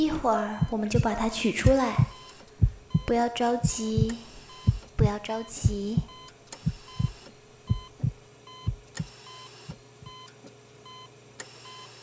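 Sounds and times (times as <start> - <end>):
speech: 0.0 - 2.2, 3.1 - 4.3, 5.0 - 6.2
heartbeat on a patient monitor: 0.0 - 9.1, 9.7 - 10.2
faint constant hum: 0.0 - 12.0
short repeating electronic beeps of a patient monitor: 2.0 - 3.2, 4.4 - 10.3.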